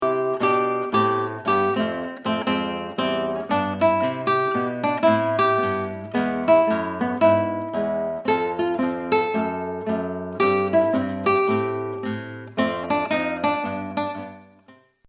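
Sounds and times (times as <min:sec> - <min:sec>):
blues music: 0:00.0 - 0:15.0.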